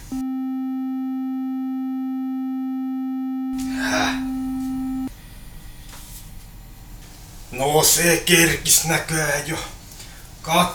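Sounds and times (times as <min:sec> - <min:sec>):
telephone ringing: 0:00.0 - 0:05.1
speech: 0:07.6 - 0:09.8, 0:10.4 - 0:10.7.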